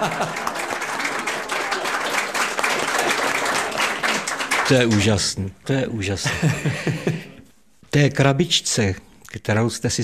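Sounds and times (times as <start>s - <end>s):
speech: 0.0s - 0.5s, 4.7s - 7.3s, 7.9s - 10.0s
laughter: 0.0s - 4.9s, 6.2s - 7.5s
audience applause: 0.0s - 5.2s.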